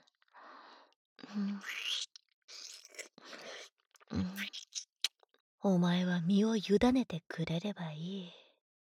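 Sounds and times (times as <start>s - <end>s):
speech: 1.3s - 2.0s, 5.6s - 8.4s
soft wet kissing from a man's lips: 4.2s - 5.2s.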